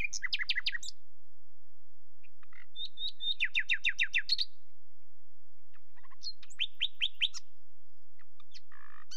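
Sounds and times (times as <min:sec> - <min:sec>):
common nightingale song: 0:00.0 - 0:01.0, 0:02.2 - 0:04.6, 0:05.6 - 0:09.1.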